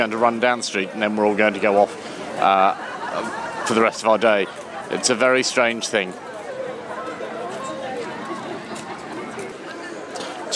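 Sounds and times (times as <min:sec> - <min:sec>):
speech: 0:00.0 - 0:06.3
street crowd chatter: 0:00.0 - 0:10.5
laughter: 0:01.8 - 0:10.5.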